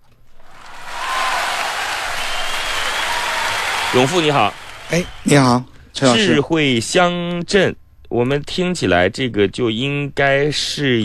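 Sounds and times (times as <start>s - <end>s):
applause: 0.4s - 5.4s
speech: 3.9s - 11.0s.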